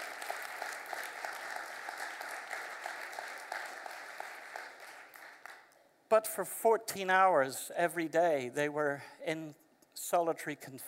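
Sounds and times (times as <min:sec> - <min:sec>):
applause: 0:00.0 - 0:05.8
speech: 0:06.1 - 0:10.8.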